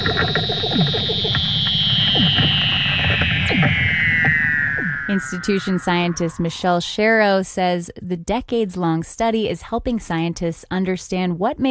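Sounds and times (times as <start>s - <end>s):
Weddell seal long high whistle underwater: 0.0s - 6.8s
Weddell seal rapid pulsing trills and descending chirps underwater: 0.0s - 7.0s
speech: 0.2s - 0.6s, 5.1s - 11.6s.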